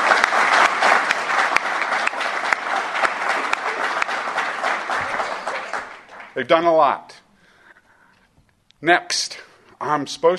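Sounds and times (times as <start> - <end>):
audience applause for event partners: 0.0 - 6.7
speech: 6.4 - 7.1, 8.8 - 10.3.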